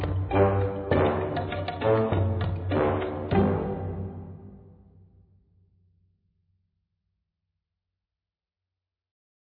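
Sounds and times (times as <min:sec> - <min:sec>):
soundtrack music: 0:00.0 - 0:05.1.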